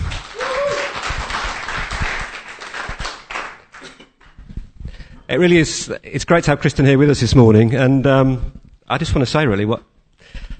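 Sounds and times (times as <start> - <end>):
church audience clapping to welcome a speaker: 0.0 - 4.4
speech: 5.3 - 10.4.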